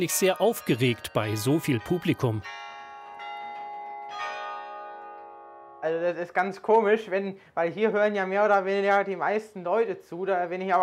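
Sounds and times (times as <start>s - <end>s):
speech: 0.0s - 2.7s, 5.8s - 10.8s
tower bells struck through a wire mechanism: 0.0s - 6.6s.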